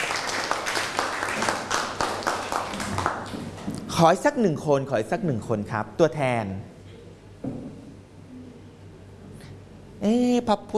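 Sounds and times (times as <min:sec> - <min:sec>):
audience applause: 0:00.0 - 0:03.4
speech: 0:04.0 - 0:06.7, 0:10.0 - 0:10.7.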